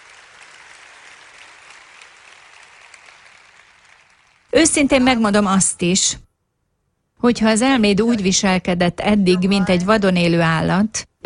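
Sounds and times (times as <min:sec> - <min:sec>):
audience applause: 0:00.0 - 0:04.5
speech: 0:04.5 - 0:06.3, 0:07.2 - 0:11.2.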